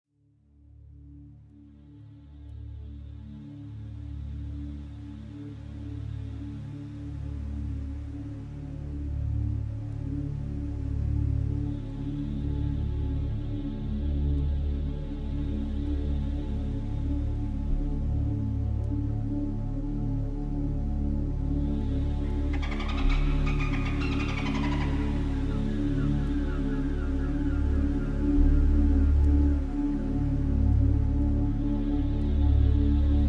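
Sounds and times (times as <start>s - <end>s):
healing meditation music: 0.2s - 33.2s
whale songs: 21.7s - 30.1s
dolphins calling: 22.2s - 27.8s.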